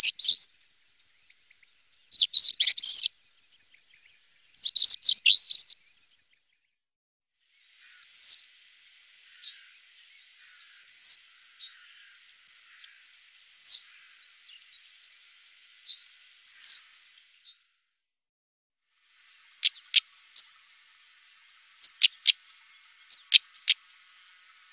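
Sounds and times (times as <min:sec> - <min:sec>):
European stonechat calling: 0:00.0 - 0:00.5, 0:02.1 - 0:03.1, 0:04.6 - 0:05.8, 0:19.6 - 0:20.5, 0:21.8 - 0:22.4.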